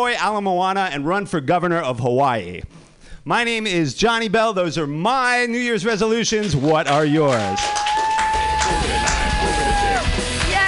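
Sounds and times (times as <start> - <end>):
speech: 0.0 - 7.8
audience clapping: 6.3 - 10.6.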